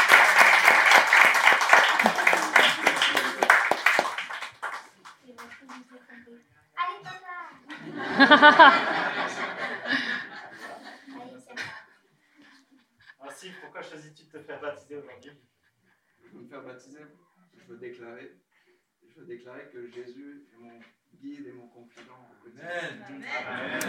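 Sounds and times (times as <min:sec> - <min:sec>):
audience clapping: 0:00.0 - 0:06.0, 0:23.6 - 0:23.8
people chuckling: 0:01.7 - 0:03.8, 0:07.7 - 0:11.1, 0:23.2 - 0:23.8
speech: 0:08.2 - 0:08.9, 0:16.6 - 0:18.4, 0:19.2 - 0:23.8.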